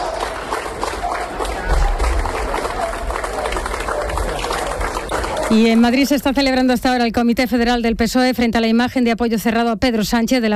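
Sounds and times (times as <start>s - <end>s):
applause greeting firefighters: 0.0s - 6.3s
speech: 5.5s - 10.5s.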